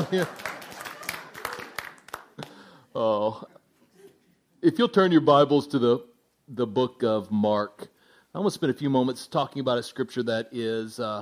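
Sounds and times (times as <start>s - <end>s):
speech: 0.0s - 0.5s, 3.0s - 3.5s, 4.6s - 11.2s
people standing and clapping: 0.0s - 2.7s.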